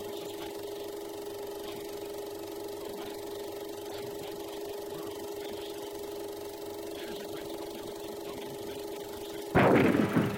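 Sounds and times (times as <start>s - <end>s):
steady low hum: 4.9s - 10.3s
roaring gunfire: 9.6s - 10.3s.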